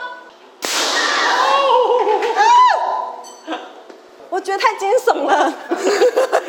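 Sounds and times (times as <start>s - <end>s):
rice puff popping machine bang: 0.6s - 1.4s
people shrieking: 1.0s - 3.2s
people laughing: 1.5s - 2.7s, 5.4s - 6.4s.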